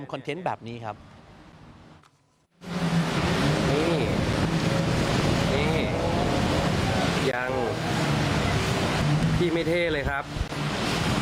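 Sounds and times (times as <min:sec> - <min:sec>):
speech: 0:00.0 - 0:01.1, 0:07.3 - 0:08.0, 0:09.4 - 0:10.8
jet ski engine roaring through floodwater on Phetchaburi Tat Mai Road: 0:02.6 - 0:11.2
rushing floodwater: 0:02.6 - 0:11.2.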